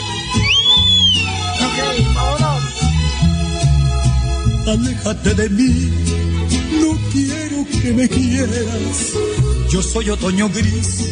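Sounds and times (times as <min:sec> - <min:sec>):
loud music with a steady bass and chords: 0:00.0 - 0:11.1
short human whistle: 0:00.3 - 0:01.4
speech: 0:04.7 - 0:06.3, 0:07.1 - 0:11.1.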